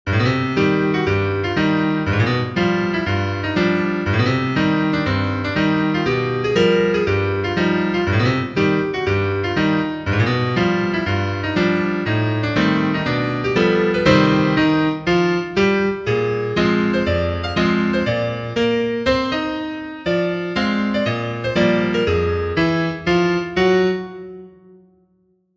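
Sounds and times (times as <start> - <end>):
piano: 0.0 - 25.5.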